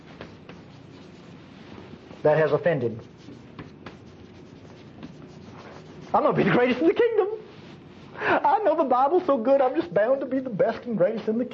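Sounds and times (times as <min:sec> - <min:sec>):
pen scratching on paper writing by hand: 0:00.0 - 0:06.8
speech: 0:02.2 - 0:03.2, 0:06.1 - 0:07.4, 0:08.2 - 0:11.5.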